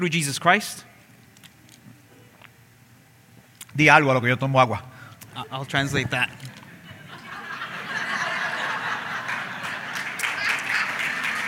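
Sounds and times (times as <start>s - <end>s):
speech: 0.0s - 0.9s, 3.8s - 6.6s
laughter: 6.0s - 11.4s
audience applause during a bilingual church sermon: 7.4s - 11.4s.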